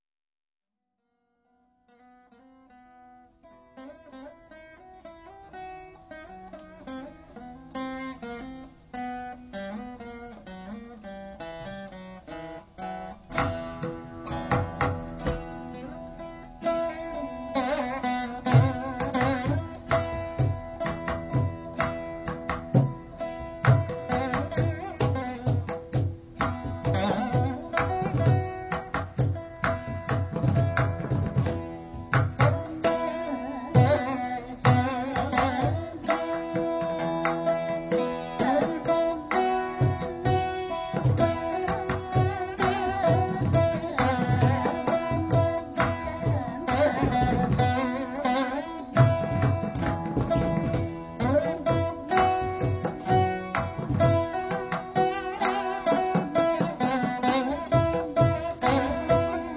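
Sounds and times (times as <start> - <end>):
veena: 1.1 - 59.5.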